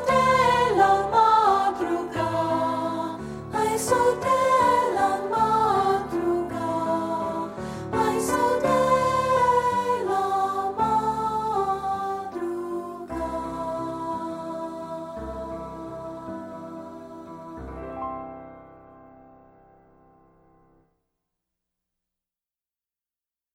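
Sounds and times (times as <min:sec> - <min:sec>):
vocals: 0:00.0 - 0:18.3.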